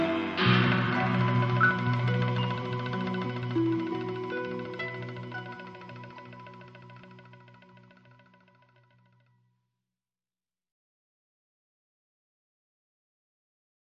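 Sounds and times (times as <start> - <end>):
Japanese ethnic music: 0.0 - 9.2.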